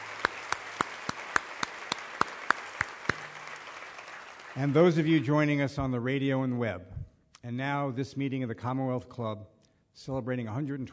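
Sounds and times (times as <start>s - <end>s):
slow hand claps from an audience in Palo Alto at a Commonwealth Club event: 0.0s - 4.6s
speech: 4.6s - 10.9s.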